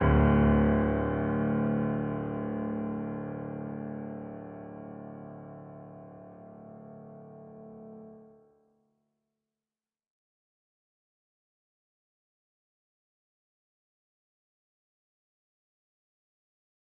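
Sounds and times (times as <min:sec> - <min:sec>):
piano: 0:00.0 - 0:08.8.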